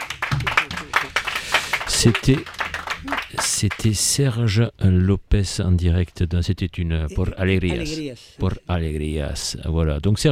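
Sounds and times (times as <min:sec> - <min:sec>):
audience applause: 0:00.0 - 0:03.9
speech: 0:02.0 - 0:10.3.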